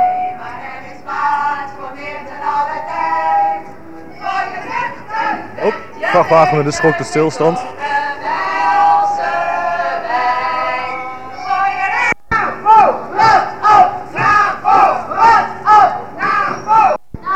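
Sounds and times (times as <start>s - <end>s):
crowd of demonstrators chanting: 0.0s - 17.3s
large crowd of demonstrators shouting: 4.2s - 17.3s
speech: 5.6s - 7.8s.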